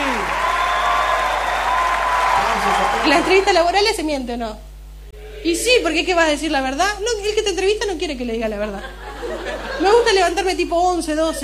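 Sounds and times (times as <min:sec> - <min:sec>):
studio audience applause: 0:00.0 - 0:04.0
speech: 0:03.1 - 0:04.7, 0:05.4 - 0:11.4
laughter: 0:08.5 - 0:11.4.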